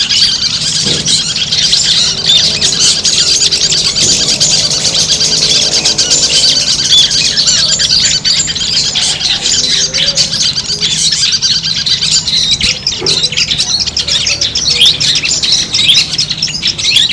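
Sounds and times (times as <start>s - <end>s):
Long-tailed shrike song: 0.0s - 17.1s.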